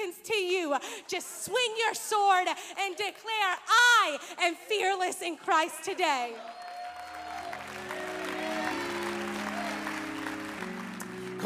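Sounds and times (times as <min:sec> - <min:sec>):
speech: 0:00.1 - 0:06.6
audience clapping: 0:06.3 - 0:11.4
organ or keyboard chords: 0:07.5 - 0:11.4.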